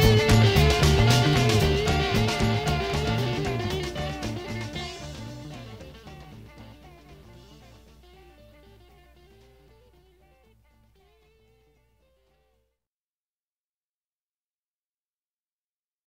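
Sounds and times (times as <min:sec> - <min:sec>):
blues music: 0:00.0 - 0:12.6.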